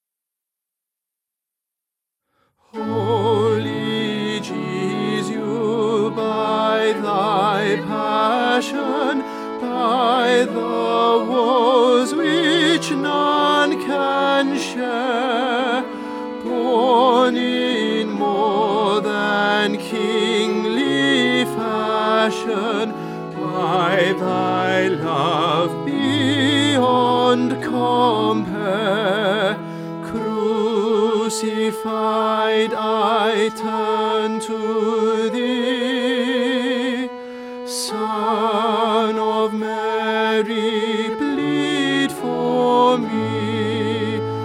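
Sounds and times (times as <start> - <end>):
tenor singing: 2.7 - 44.4.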